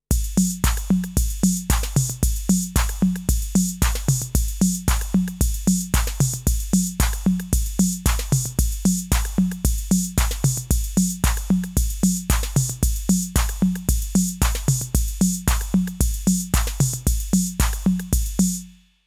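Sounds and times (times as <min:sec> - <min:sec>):
music loop: 0:00.1 - 0:18.6.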